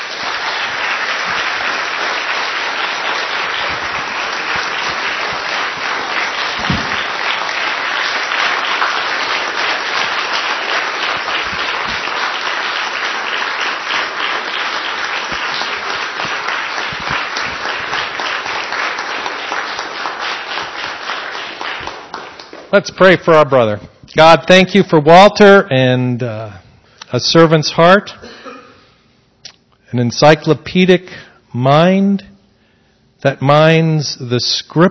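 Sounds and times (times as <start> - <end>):
crowd applauding: 0.0 - 23.3
speech: 22.8 - 28.3, 29.9 - 32.3, 33.2 - 34.9.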